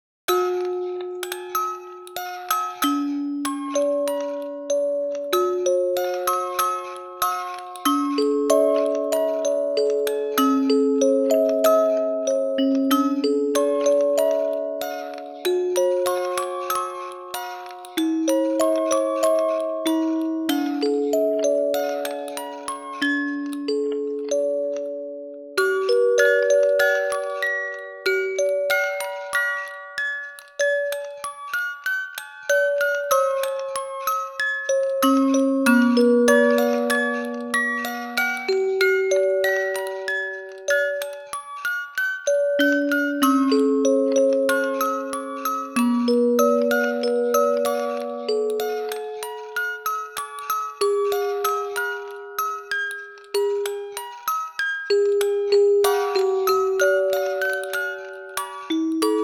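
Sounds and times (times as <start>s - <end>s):
music box version: 0.3s - 59.2s.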